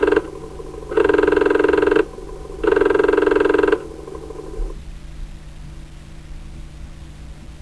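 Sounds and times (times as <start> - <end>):
Apple Disk II drive calibrating: 0.0 - 4.9.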